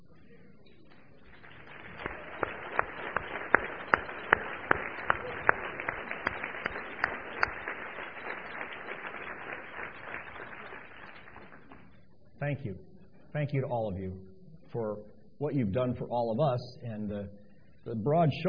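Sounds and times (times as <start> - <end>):
audience applause: 1.1 - 12.1
speech: 12.5 - 18.4.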